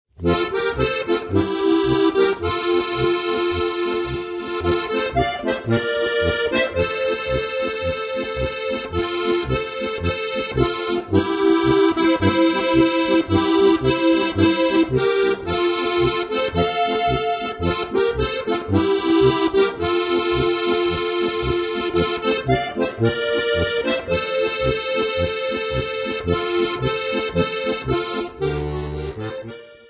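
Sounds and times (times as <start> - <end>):
South Bohemian polka music: 0.1 - 29.8.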